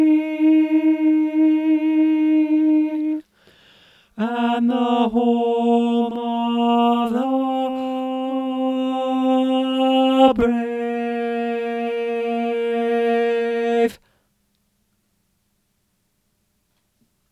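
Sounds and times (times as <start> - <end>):
tenor choir singing: 0.0 - 3.2, 4.2 - 14.0.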